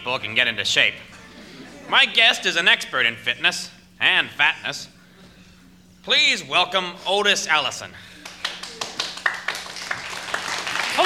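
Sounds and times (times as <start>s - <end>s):
speech: 0.0s - 1.2s, 1.9s - 5.0s, 6.0s - 8.1s
thin scattered applause: 8.2s - 11.0s.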